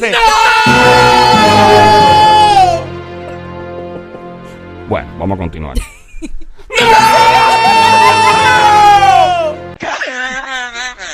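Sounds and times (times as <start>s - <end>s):
speech: 0.0s - 0.9s, 1.6s - 2.0s, 4.9s - 8.3s
crowd shouting: 0.0s - 2.9s, 6.7s - 9.8s
laughter: 5.8s - 9.1s, 9.7s - 11.1s.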